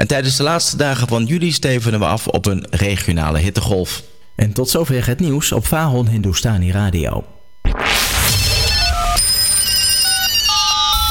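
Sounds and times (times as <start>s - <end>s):
speech: 0.0s - 8.1s
telephone ringing in electronic tones: 8.6s - 11.0s.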